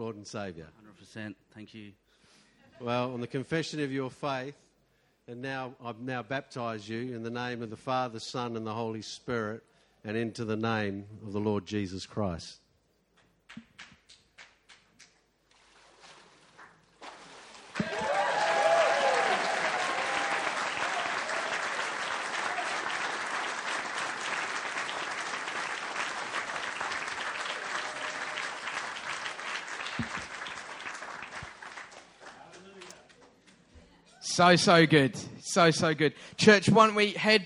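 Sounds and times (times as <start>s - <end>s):
speech: 0.0s - 2.2s, 2.8s - 4.7s, 5.3s - 12.6s, 13.5s - 13.9s, 34.4s - 37.4s
crowd applause: 17.8s - 33.3s.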